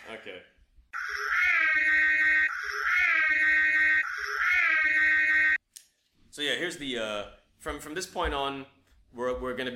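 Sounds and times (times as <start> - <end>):
speech: 0.1 - 2.1, 6.4 - 9.7
spoiler alarm klaxon: 1.0 - 5.6.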